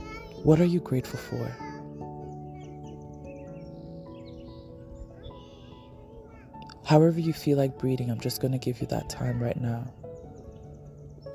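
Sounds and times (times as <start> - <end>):
birds chirping: 0.0 - 11.3
speech: 0.4 - 1.7, 6.9 - 10.0.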